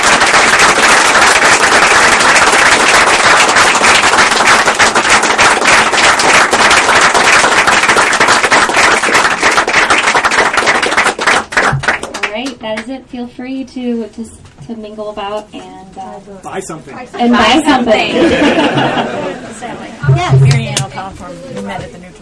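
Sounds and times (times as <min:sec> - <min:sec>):
audience applause: 0:00.0 - 0:12.5
speech: 0:13.0 - 0:22.2
laughter: 0:17.2 - 0:20.0.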